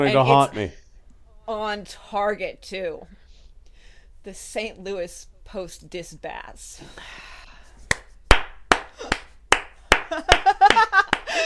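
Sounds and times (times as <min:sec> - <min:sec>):
speech: 0:00.0 - 0:00.8, 0:01.5 - 0:03.2, 0:04.2 - 0:07.3
hand slaps: 0:07.9 - 0:11.3.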